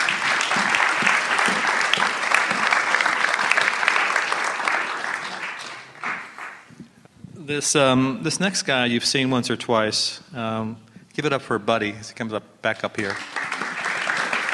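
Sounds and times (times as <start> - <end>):
crowd applause: 0.0 - 6.8, 13.0 - 14.5
speech: 7.5 - 13.3.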